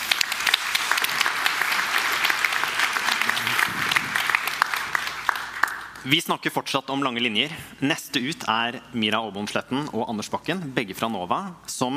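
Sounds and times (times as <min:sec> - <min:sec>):
audience applause: 0:00.0 - 0:06.0
speech: 0:06.0 - 0:11.9.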